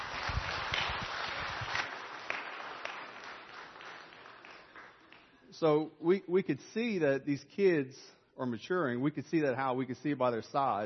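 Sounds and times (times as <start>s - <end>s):
audience clapping: 0.0s - 5.4s
speech: 5.6s - 10.8s.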